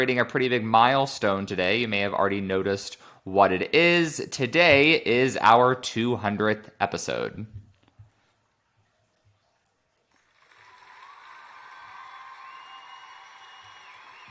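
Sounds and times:
speech: 0:00.0 - 0:07.6
cheering crowd sound effect: 0:10.2 - 0:14.2.

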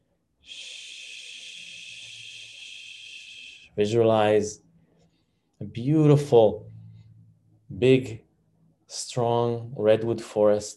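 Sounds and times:
long exhaled shushing SH sound: 0:00.5 - 0:03.8
speech: 0:03.8 - 0:04.6, 0:05.8 - 0:06.7, 0:07.7 - 0:08.2, 0:08.9 - 0:10.7.

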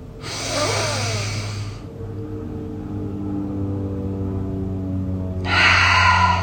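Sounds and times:
steady low droning hum: 0:00.0 - 0:06.4
deep exhales through an open mouth: 0:00.2 - 0:01.8, 0:05.4 - 0:06.4.

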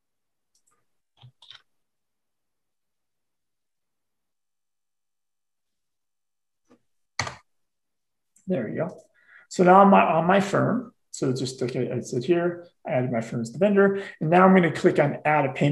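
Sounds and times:
computer keyboard keystrokes: 0:07.2 - 0:07.4
speech: 0:08.5 - 0:15.6.

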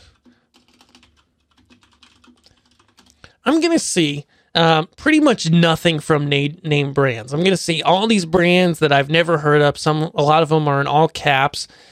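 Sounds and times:
rapid computer keyboard typing entering a search: 0:00.0 - 0:03.3
speech: 0:03.4 - 0:11.9.

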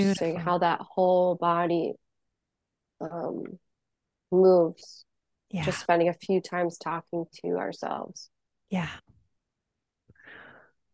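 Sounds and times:
speech: 0:00.0 - 0:02.0, 0:03.0 - 0:03.6, 0:04.3 - 0:09.1
slow deep breathing during a coaching session: 0:10.2 - 0:10.7.

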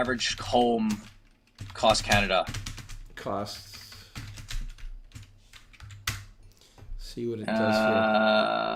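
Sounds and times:
speech: 0:00.0 - 0:01.2, 0:01.8 - 0:03.8, 0:07.2 - 0:08.7
typing on a computer keyboard while entering a search: 0:00.0 - 0:06.6.

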